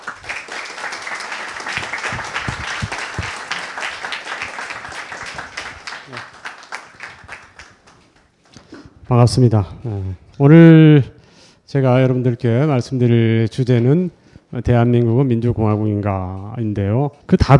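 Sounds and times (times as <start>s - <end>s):
audience applause: 0.0s - 8.1s
speech: 9.1s - 17.5s.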